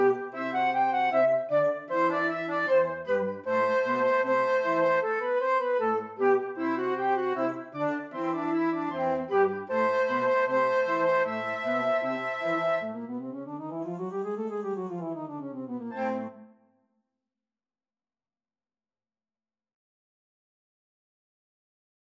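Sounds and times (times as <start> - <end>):
flute: 0.0 - 16.6.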